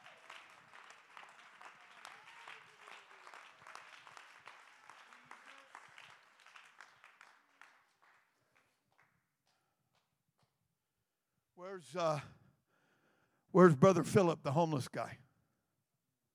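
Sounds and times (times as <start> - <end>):
audience clapping hands: 0.0 - 10.5
speech: 11.6 - 12.3, 13.5 - 15.2.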